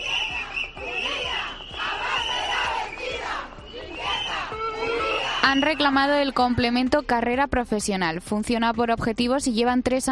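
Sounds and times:
protest crowd chanting: 0.0 - 5.7
protest crowd whistling: 0.0 - 6.4
speech: 5.4 - 10.1.

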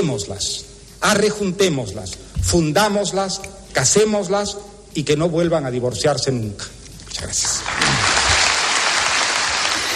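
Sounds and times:
speech: 0.0 - 8.0
audience applause: 7.4 - 9.9.

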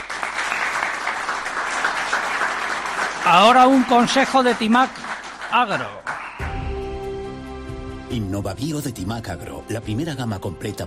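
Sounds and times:
audience applause for bagpiper and drummer: 0.0 - 6.6
speech: 3.3 - 6.0, 8.1 - 10.8.

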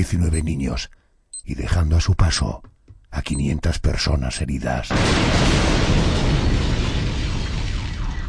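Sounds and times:
speech: 0.0 - 6.3
bomb explosion: 4.9 - 8.2.

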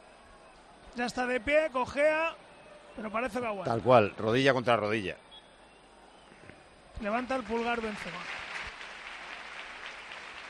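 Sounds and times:
speech: 1.0 - 2.4, 3.0 - 5.2, 7.0 - 8.4
stadium crowd applauding: 7.0 - 10.4.

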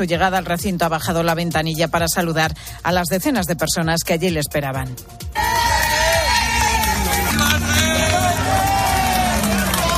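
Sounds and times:
speech: 0.0 - 5.4
crowd applauding: 5.4 - 9.9.

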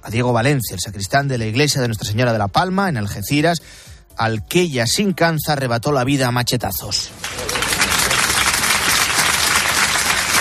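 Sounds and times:
speech: 0.0 - 7.4
crowd applause after a funeral: 7.1 - 10.3.

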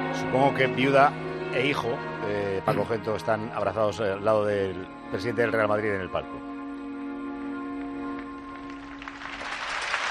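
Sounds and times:
speech: 0.1 - 6.5
stadium crowd standing ovation applause: 8.5 - 10.0.

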